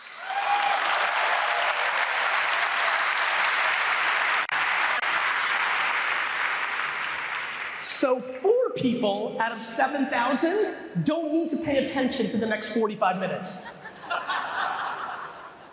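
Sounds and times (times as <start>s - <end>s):
crowd applauding: 0.0s - 8.0s
speech: 8.0s - 13.8s
laughter: 13.5s - 15.7s.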